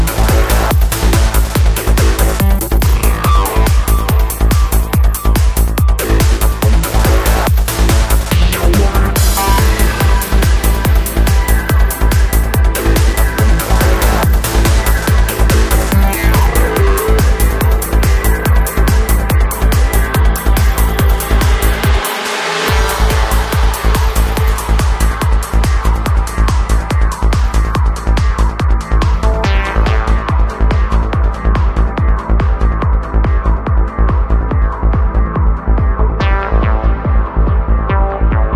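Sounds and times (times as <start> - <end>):
drums: 0.0 - 38.5
psychedelic progressive trance music with drums: 0.0 - 38.5.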